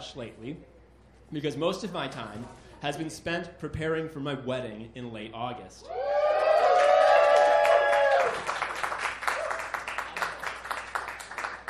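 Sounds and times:
speech: 0.1 - 6.1
audience applause: 6.2 - 11.6.

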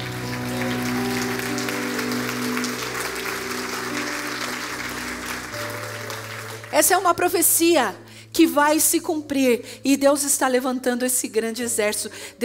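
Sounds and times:
sustained musical tone humming: 0.0 - 6.8
crowd clapping: 0.0 - 7.2
speech: 6.8 - 12.4.

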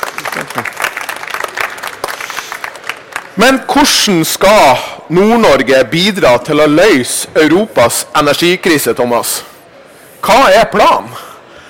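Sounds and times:
audience applause: 0.0 - 3.4
speech: 0.6 - 0.9, 3.4 - 9.5, 10.2 - 11.2.

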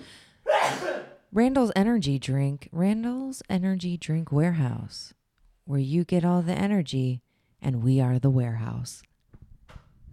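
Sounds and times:
person sneezing: 0.0 - 1.2
speech: 1.3 - 9.1.

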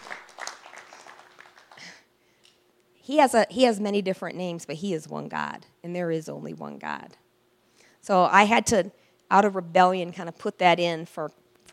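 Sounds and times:
audience hand clapping: 0.0 - 2.0
speech: 3.1 - 7.2, 8.0 - 11.4.

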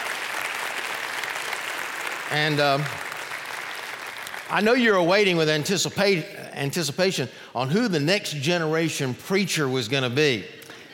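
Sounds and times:
audience applauding: 0.0 - 5.0
speech: 2.3 - 3.0, 4.5 - 10.6.

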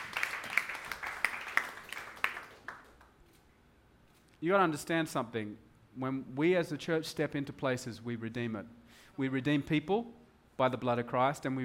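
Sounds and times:
audience clapping: 0.0 - 3.3
speech: 4.4 - 11.6.

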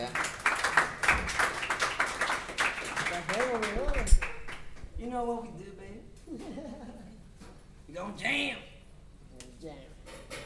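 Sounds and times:
audience applause: 0.0 - 4.7
laughter: 6.3 - 7.4
speech: 7.9 - 8.7.

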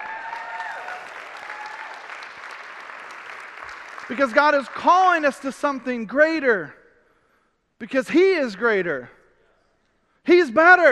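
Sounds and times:
crowd applauding: 0.0 - 5.6
speech: 4.1 - 6.8, 7.8 - 9.2, 10.3 - 10.9.

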